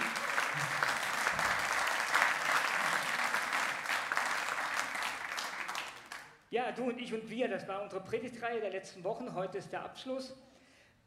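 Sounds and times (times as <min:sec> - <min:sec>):
audience applause: 0:00.0 - 0:06.4
speech: 0:06.5 - 0:10.5.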